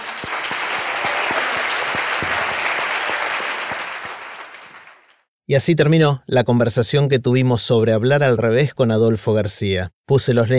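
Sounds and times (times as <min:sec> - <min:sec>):
audience applause: 0:00.0 - 0:05.2
speech: 0:05.5 - 0:10.5.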